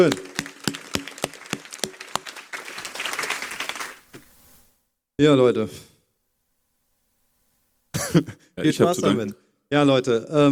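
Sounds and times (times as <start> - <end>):
speech: 0.0 - 0.3, 5.2 - 5.9, 8.1 - 10.5
audience applause: 0.0 - 4.1.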